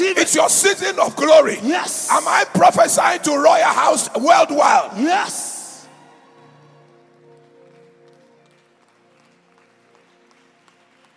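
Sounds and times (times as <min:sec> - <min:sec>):
speech: 0:00.2 - 0:05.4
audience clapping: 0:05.2 - 0:11.1.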